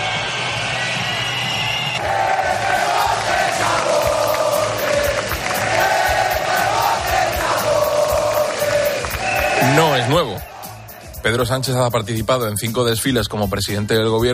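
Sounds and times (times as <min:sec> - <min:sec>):
crowd whistling at a parade: 0:00.0 - 0:02.2, 0:07.8 - 0:11.2
large crowd booing at a parade: 0:00.0 - 0:11.2
speech: 0:11.3 - 0:14.3.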